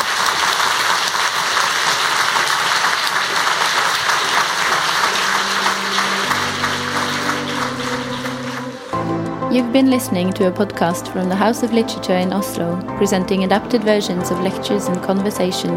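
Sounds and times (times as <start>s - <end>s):
audience applause: 0.0s - 9.1s
speech: 9.6s - 15.7s.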